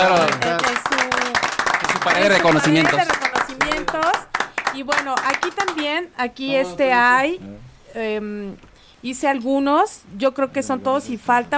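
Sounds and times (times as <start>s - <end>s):
audience applause: 0.0s - 5.9s
speech: 2.2s - 3.2s, 4.8s - 11.5s.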